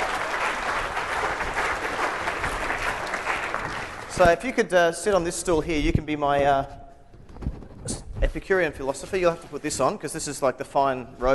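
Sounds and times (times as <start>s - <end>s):
audience applause: 0.0s - 4.4s
speech: 4.2s - 6.8s, 8.4s - 11.3s.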